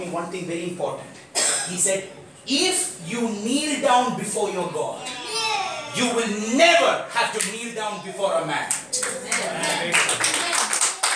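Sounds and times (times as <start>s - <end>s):
speech: 0.0s - 5.2s, 5.9s - 10.3s
voices speaking and calling out: 4.3s - 9.8s
hands clapping in a church worship service: 7.4s - 7.6s, 8.6s - 11.1s.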